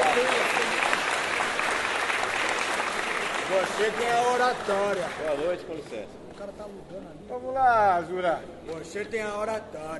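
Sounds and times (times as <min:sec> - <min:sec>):
audience applause for the composer: 0:00.0 - 0:05.6
speech: 0:03.8 - 0:09.9.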